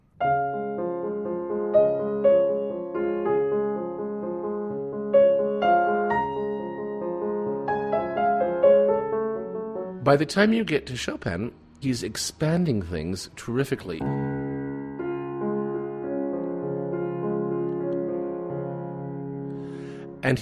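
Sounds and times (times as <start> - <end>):
piano nocturne melody over an Alberti bass: 0.0 - 20.4
speech: 10.1 - 14.2.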